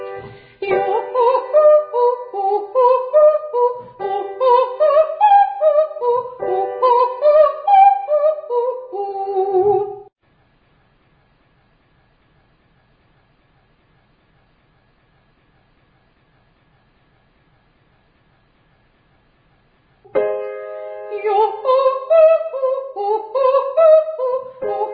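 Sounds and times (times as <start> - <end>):
descending vocal triads: 0.2 - 10.0, 21.0 - 24.8.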